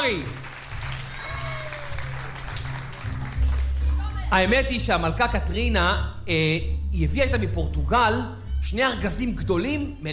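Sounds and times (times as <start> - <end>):
speech: 0.0 - 0.4, 4.3 - 10.1
applause: 0.0 - 4.3.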